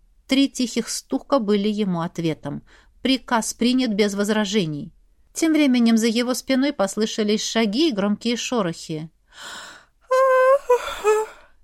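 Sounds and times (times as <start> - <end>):
speech: 0.3 - 9.6
woman yawning: 10.1 - 11.5.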